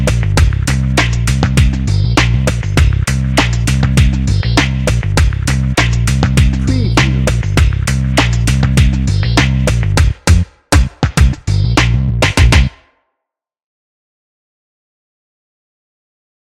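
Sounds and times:
hypnotic chill out drum and bass: 0:00.0 - 0:12.7.

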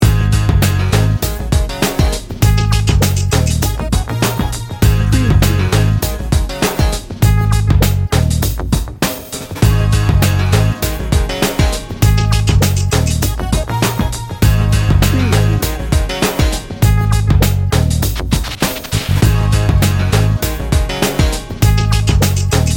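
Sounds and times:
hip hop bounce beat: 0:00.0 - 0:22.7.

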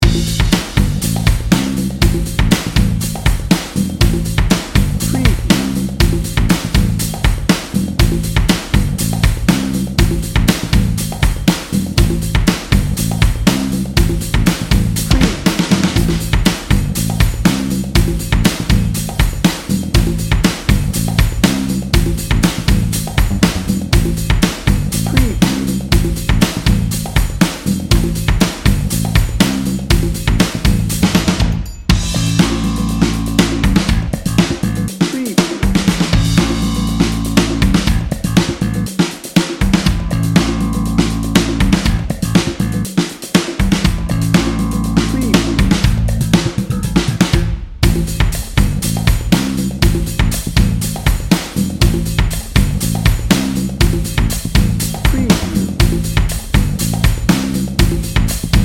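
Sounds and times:
funky fun music: 0:00.0 - 0:58.6.

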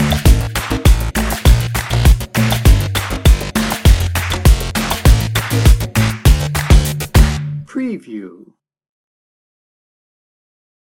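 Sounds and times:
friendly drum and bass music: 0:00.0 - 0:07.6.

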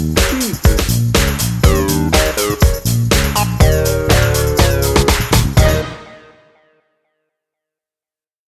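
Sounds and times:
party starter music bed: 0:00.0 - 0:06.7.

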